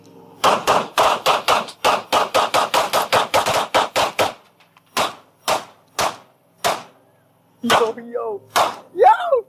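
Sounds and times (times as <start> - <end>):
gunfire as a magazine is emptied into an alligator in the Florida Everglades: 0.4 - 7.0, 7.6 - 8.9
voices: 7.0 - 9.4.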